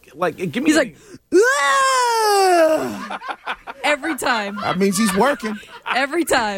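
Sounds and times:
speech: 0.1 - 6.5
voice imitating gym-style scream and grunt: 1.3 - 3.0
laughter: 2.8 - 6.5.

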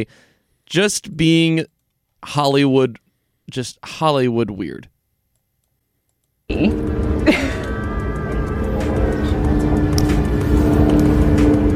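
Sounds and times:
speech: 0.0 - 4.9, 6.5 - 7.4
helicopter flying overhead: 6.5 - 11.7.

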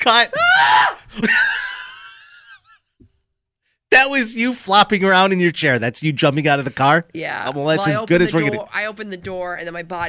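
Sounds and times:
speech: 0.0 - 1.6, 4.0 - 10.0
person screaming: 0.3 - 1.0
laughter: 1.0 - 2.7.

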